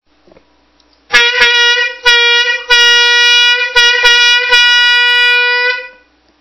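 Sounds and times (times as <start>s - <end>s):
horn: 1.1s - 6.1s.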